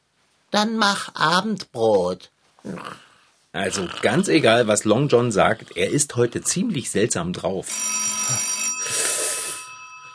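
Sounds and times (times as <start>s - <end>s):
speech: 0.5s - 8.5s
aggressive bell ringing: 7.7s - 10.1s.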